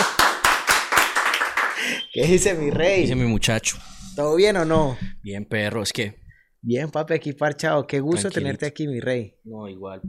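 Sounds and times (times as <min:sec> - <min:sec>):
applause for the guest: 0:00.0 - 0:02.0
speech: 0:02.2 - 0:10.0.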